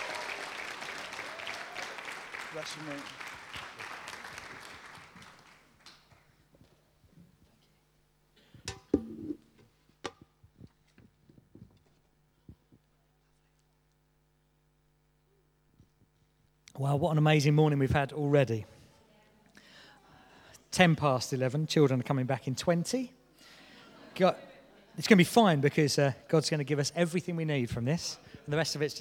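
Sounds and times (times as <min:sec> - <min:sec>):
audience applauding speaker: 0:00.0 - 0:06.4
speech: 0:02.5 - 0:03.3, 0:16.9 - 0:18.7, 0:20.8 - 0:23.2, 0:24.2 - 0:28.9
scattered thumps: 0:08.6 - 0:11.9.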